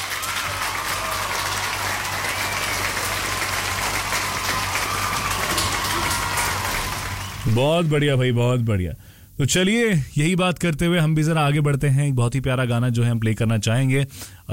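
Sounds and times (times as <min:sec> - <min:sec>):
crowd applause: 0:00.0 - 0:08.2
speech: 0:07.4 - 0:14.5.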